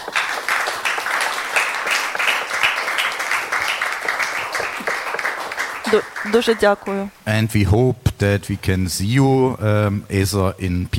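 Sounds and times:
crowd clapping: 0.0s - 7.1s
speech: 5.9s - 10.9s.

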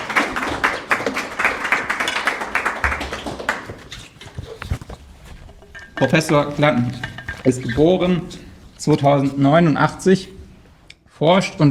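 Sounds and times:
audience applause: 0.0s - 4.2s
speech: 6.0s - 10.3s, 11.2s - 11.6s.

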